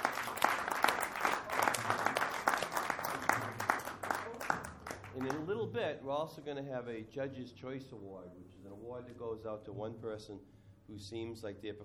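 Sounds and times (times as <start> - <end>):
audience applause: 0.0 - 5.5
speech: 5.2 - 11.8.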